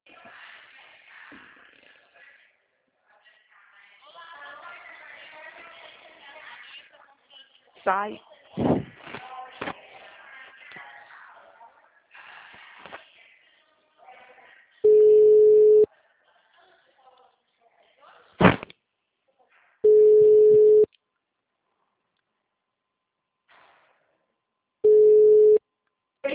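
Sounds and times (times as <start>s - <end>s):
speech: 7.8s - 8.7s
telephone busy tone beeps after a hung-up call: 14.9s - 15.9s, 19.9s - 20.9s, 24.8s - 25.6s.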